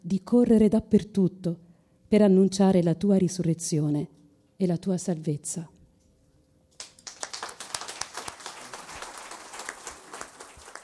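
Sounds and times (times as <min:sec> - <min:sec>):
speech: 0:00.1 - 0:05.8
audience applause: 0:06.8 - 0:10.8.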